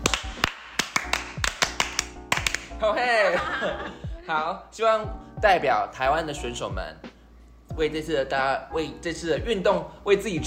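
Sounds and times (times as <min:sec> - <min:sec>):
Taiwanese love encouragement cheer rhythmic clapping: 0:00.0 - 0:02.8
speech: 0:02.8 - 0:07.1, 0:07.8 - 0:10.4
laughter: 0:03.1 - 0:04.1.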